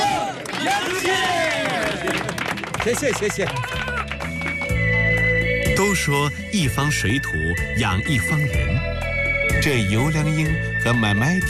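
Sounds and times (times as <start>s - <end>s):
crowd voices cheering: 0.0s - 2.4s
audience clapping: 0.0s - 5.2s
speech: 2.8s - 4.0s, 5.8s - 11.4s.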